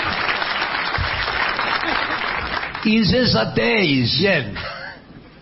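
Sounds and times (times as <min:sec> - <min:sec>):
crowd applause: 0:00.0 - 0:03.0
speech: 0:02.8 - 0:04.7.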